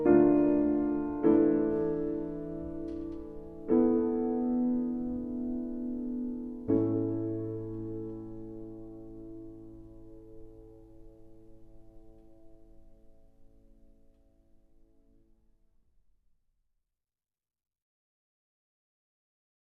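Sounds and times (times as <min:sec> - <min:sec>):
piano elegy: 0:00.0 - 0:15.3.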